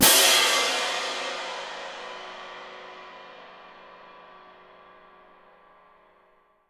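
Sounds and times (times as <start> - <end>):
cymbal: 0.0 - 6.4.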